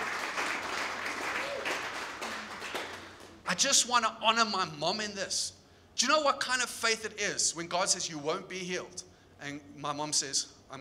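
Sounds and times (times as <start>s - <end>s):
audience applause: 0.0s - 3.4s
speech: 3.5s - 10.7s.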